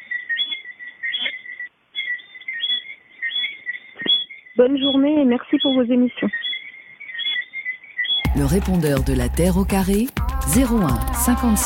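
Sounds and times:
frogs chirping at night: 0:00.0 - 0:08.4
speech: 0:04.6 - 0:06.5, 0:08.4 - 0:11.6.

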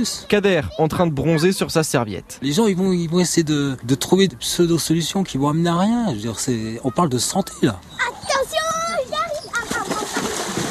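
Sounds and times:
speech: 0:00.0 - 0:08.2
children splashing in lake water: 0:08.1 - 0:10.6
children's high-pitched voices and short shouts: 0:08.1 - 0:10.6.

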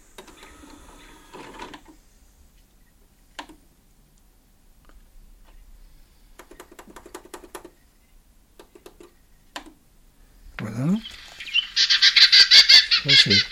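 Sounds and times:
Western Orphean Warbler battle call: 0:10.9 - 0:13.5.

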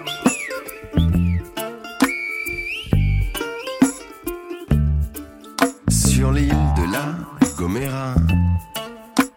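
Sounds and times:
human whistling in the style of Silbo: 0:00.1 - 0:04.0
music with thumping low beats: 0:00.8 - 0:01.6, 0:02.6 - 0:08.8.

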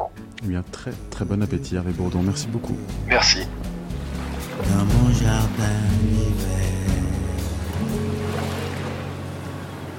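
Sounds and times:
speech: 0:00.4 - 0:03.7, 0:04.6 - 0:06.8
seaside waves washing: 0:03.8 - 0:09.9.

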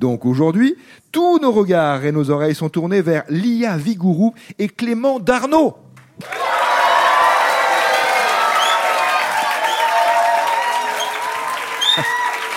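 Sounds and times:
speech: 0:00.0 - 0:06.4
audience applauding: 0:06.2 - 0:12.5.

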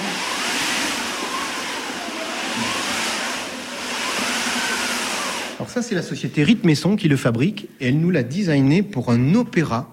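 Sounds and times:
mechanical wind machine for theatre effects: 0:00.0 - 0:05.7
speech: 0:05.7 - 0:09.9.

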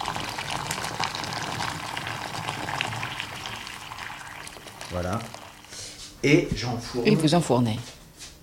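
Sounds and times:
boiling water poured into foie gras terrines: 0:00.0 - 0:05.8
speech: 0:04.9 - 0:05.4, 0:06.2 - 0:08.0.

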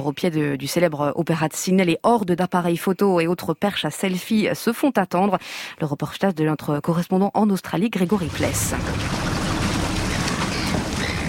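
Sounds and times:
speech: 0:00.0 - 0:09.3
waves: 0:08.1 - 0:11.2
seagulls crying: 0:09.0 - 0:11.2.

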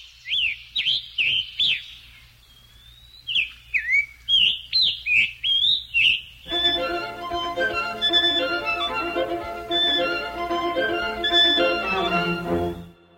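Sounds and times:
Scarlet Tanager singing: 0:00.0 - 0:06.4
string quartet playing: 0:06.5 - 0:13.1.

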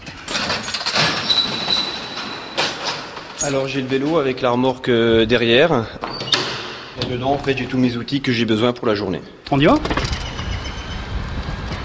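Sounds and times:
door squeaking as it opens: 0:00.0 - 0:03.8, 0:06.0 - 0:07.3, 0:09.7 - 0:11.1
speech: 0:03.4 - 0:06.2, 0:07.0 - 0:10.0.

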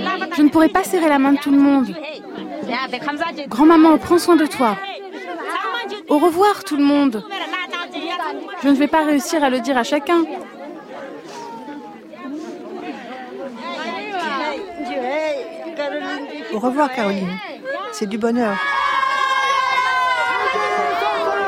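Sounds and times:
speech: 0:00.5 - 0:04.9, 0:06.1 - 0:07.4, 0:08.6 - 0:10.4, 0:16.6 - 0:18.8
crowd shouting: 0:02.2 - 0:21.4.

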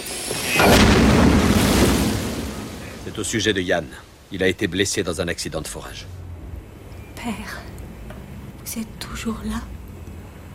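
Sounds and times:
explosion: 0:00.0 - 0:03.6
speech: 0:03.2 - 0:06.3, 0:07.2 - 0:07.7, 0:08.7 - 0:09.8.

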